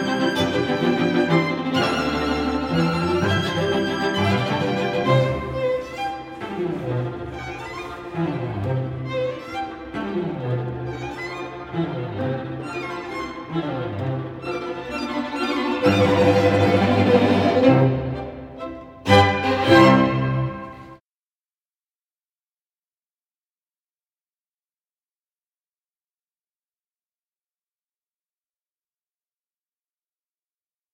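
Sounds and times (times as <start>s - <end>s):
string quartet: 0.0s - 21.0s.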